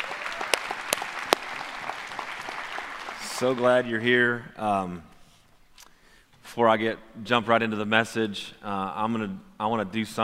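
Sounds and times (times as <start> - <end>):
audience applause: 0.0 - 4.0
speech: 3.4 - 5.1, 6.6 - 10.2.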